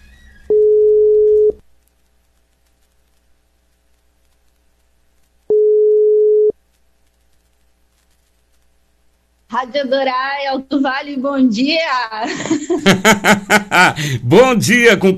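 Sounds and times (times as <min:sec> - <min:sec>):
telephone ringback tone beeps while calling a listener: 0:00.5 - 0:01.6, 0:05.5 - 0:06.5
speech: 0:09.6 - 0:15.1
laughter: 0:12.2 - 0:14.3.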